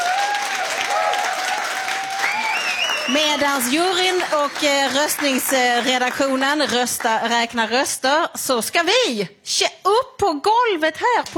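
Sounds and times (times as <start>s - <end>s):
audience applause: 0.0s - 7.3s
speech: 3.1s - 11.3s.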